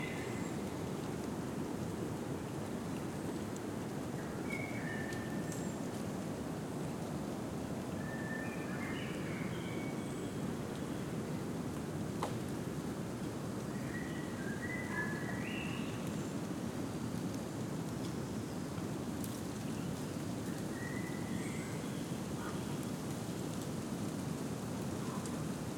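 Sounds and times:
leaves rustling in a deciduous forest: 0.0s - 7.4s, 14.6s - 25.7s
gentle wind in a deciduous forest at noon in spring: 0.0s - 25.7s.

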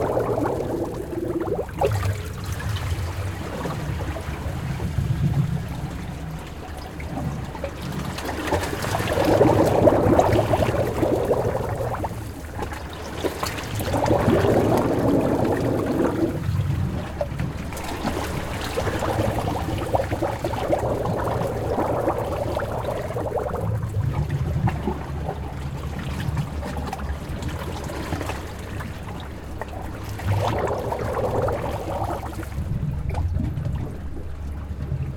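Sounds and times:
water bubbling between rocks in an inlet: 0.0s - 35.1s.

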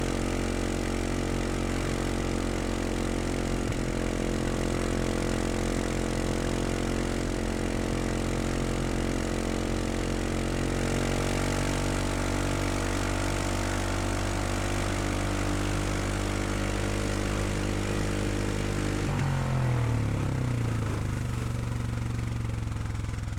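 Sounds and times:
ATV engine exhaust at steady RPMs, starting and driving: 0.0s - 23.3s.

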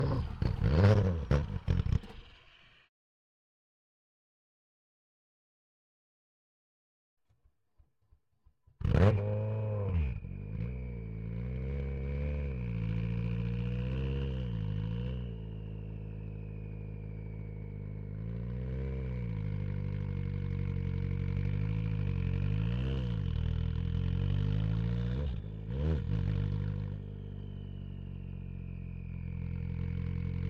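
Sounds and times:
Citroen Xsara WRC rally car exhaust starting, driving and stopping on ramps: 0.0s - 2.7s, 8.8s - 30.4s.

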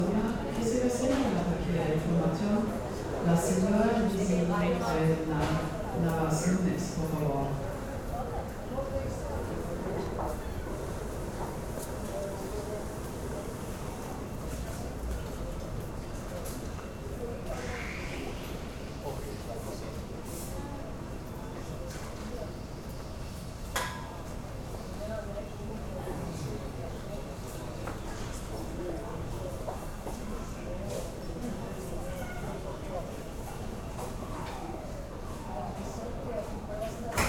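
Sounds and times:
Frankfurt Airport ambience: 0.0s - 37.2s.

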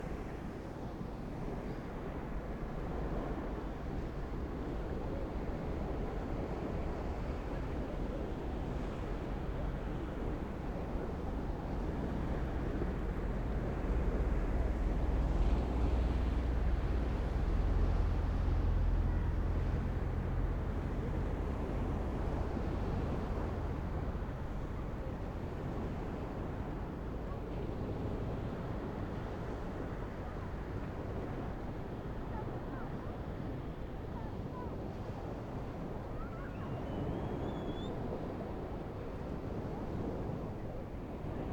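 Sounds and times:
distant calm beach surf on the coast: 0.0s - 41.5s.

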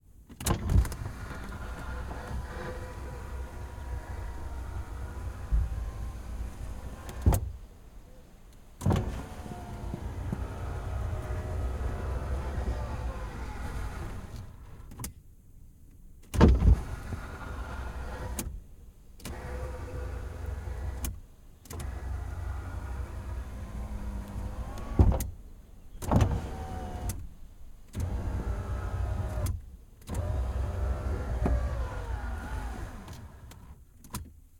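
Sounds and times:
1984 Pontiac Trans Am window: 0.3s - 7.7s, 8.7s - 15.2s, 16.3s - 18.6s, 19.2s - 34.3s.

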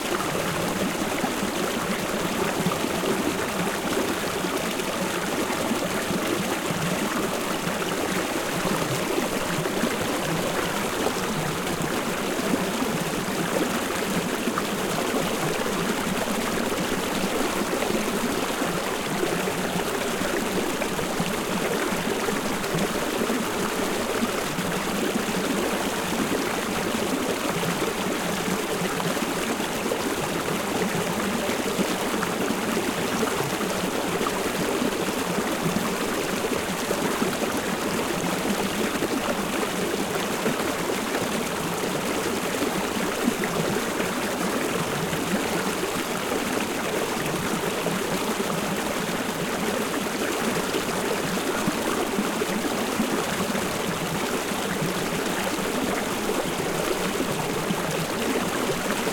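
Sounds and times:
small alpine stream flowing water: 0.0s - 59.1s.

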